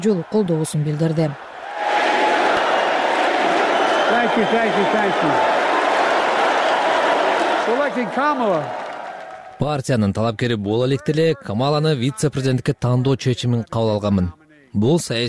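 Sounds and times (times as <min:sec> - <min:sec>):
speech: 0:00.0 - 0:01.5, 0:04.1 - 0:05.6, 0:07.7 - 0:08.8, 0:09.6 - 0:15.2
political convention crowd cheering and applauding as Biden takes the stage: 0:00.0 - 0:10.1.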